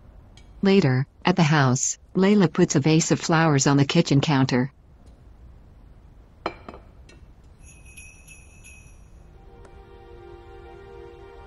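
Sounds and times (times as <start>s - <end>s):
speech: 0.6s - 4.8s
bells ringing: 7.6s - 9.6s.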